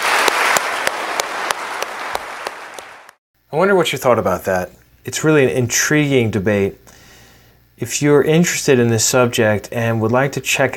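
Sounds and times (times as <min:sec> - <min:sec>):
audience applause for the panelists: 0:00.0 - 0:03.2
speech: 0:03.5 - 0:06.9, 0:07.8 - 0:10.7.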